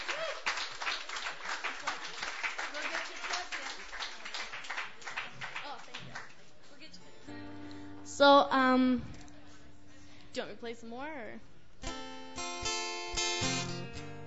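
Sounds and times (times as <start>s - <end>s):
audience applause at an open mic night: 0.0s - 6.8s
speech: 8.2s - 9.2s, 10.4s - 11.5s, 13.4s - 14.0s.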